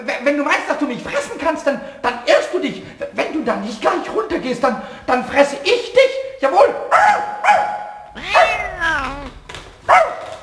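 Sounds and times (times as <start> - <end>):
speech: 0.0 - 2.1, 3.5 - 7.3
human voice imitating a dog barking: 8.2 - 9.4.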